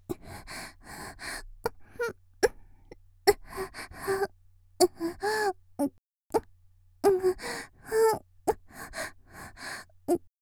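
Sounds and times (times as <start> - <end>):
person panting quietly: 0.0 - 4.3, 7.1 - 10.3.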